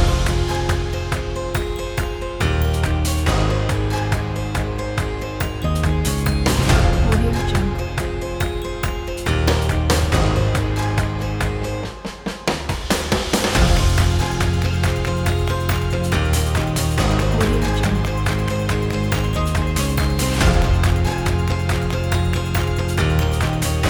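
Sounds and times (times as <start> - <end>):
upbeat corporate music: 0.0 - 23.8.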